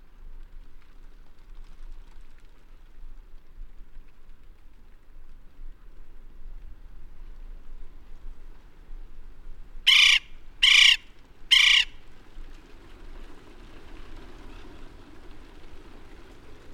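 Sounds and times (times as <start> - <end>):
male West Indian woodpecker calls: 9.9 - 12.0.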